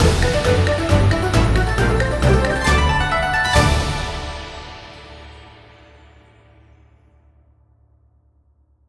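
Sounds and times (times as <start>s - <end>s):
big win ending jingle: 0.0s - 5.9s.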